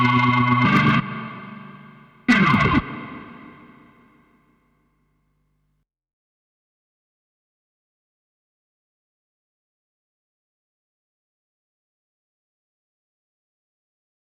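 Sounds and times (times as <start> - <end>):
SE70 rotary speaker effect: 0.0 - 4.0.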